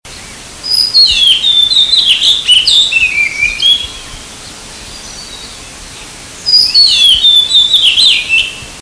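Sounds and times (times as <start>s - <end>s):
background hiss: 0.1s - 8.8s
azure-winged magpie chattering calls: 0.7s - 3.9s, 6.5s - 8.6s.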